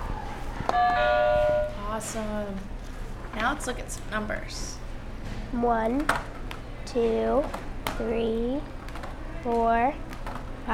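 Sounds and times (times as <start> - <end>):
low hum: 0.0 - 10.7
loud steady electronic buzzer tone: 0.8 - 1.8
speech: 2.0 - 2.8, 3.4 - 8.8, 9.4 - 10.0.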